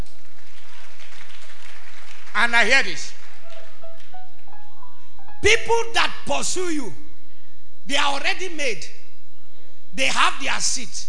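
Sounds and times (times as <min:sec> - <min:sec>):
crowd applauding: 0:00.0 - 0:04.9
speech: 0:02.4 - 0:03.2, 0:05.4 - 0:07.0, 0:07.9 - 0:09.0, 0:10.0 - 0:11.0.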